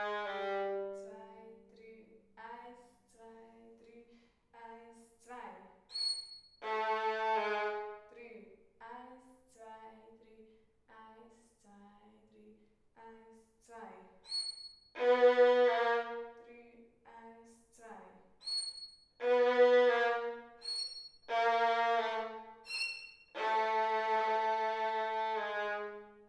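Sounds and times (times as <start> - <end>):
violin: 0.0 - 1.4, 6.0 - 8.1, 14.3 - 16.4, 18.4 - 26.2.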